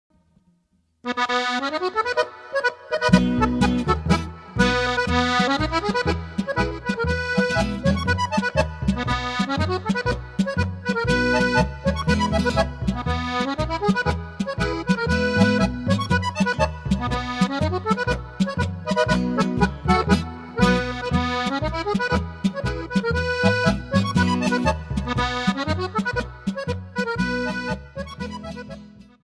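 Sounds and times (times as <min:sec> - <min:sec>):
polka music: 0:01.0 - 0:29.2.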